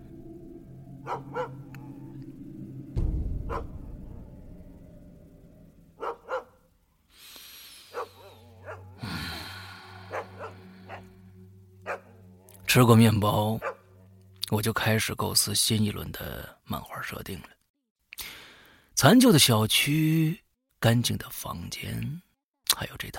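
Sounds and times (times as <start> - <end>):
speech: 1.0 - 1.4, 12.7 - 13.7, 14.5 - 17.6, 19.0 - 23.1
dog barking on the first floor: 1.0 - 1.6, 3.5 - 3.7, 6.0 - 6.6, 7.9 - 9.0, 10.0 - 11.1, 11.9 - 12.1, 13.6 - 13.9.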